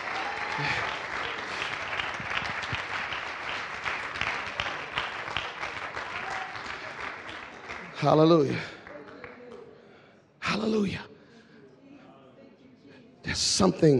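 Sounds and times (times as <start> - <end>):
audience clapping: 0.0 - 9.7
speech: 0.6 - 1.0, 8.0 - 8.8, 13.6 - 13.9.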